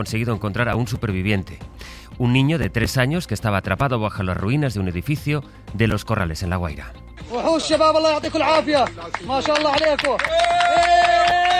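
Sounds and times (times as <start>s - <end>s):
speech: 0.0s - 11.5s
applause for a rescue: 8.5s - 11.5s
cheers for a rescue: 9.4s - 11.5s.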